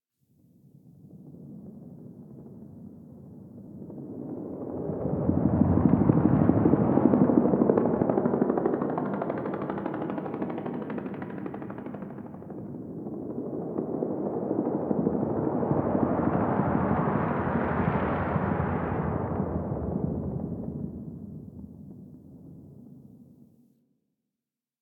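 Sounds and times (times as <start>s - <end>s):
distant helicopter: 1.4s - 22.9s.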